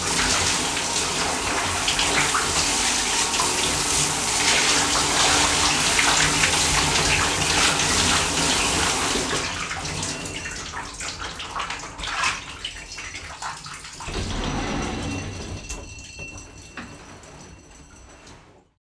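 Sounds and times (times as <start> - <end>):
shower running: 0.0 - 18.4.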